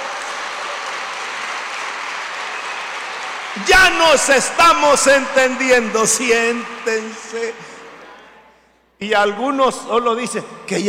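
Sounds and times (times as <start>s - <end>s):
audience applause: 0.0s - 8.2s
speech: 3.6s - 7.7s, 9.0s - 10.8s.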